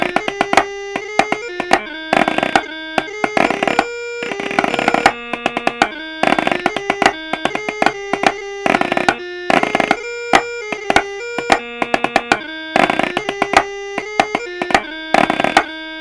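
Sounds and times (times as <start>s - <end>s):
snare chanter playing: 0.0s - 15.9s.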